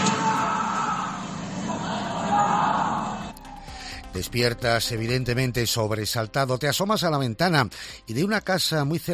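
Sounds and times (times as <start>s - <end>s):
person screaming at night: 0.2s - 3.4s
speech: 4.1s - 9.1s.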